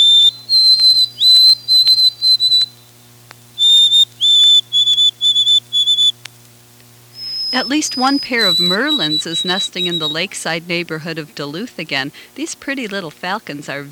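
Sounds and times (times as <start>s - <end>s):
white-throated sparrow singing: 0.0s - 6.1s, 7.2s - 10.4s
speech: 7.6s - 13.9s.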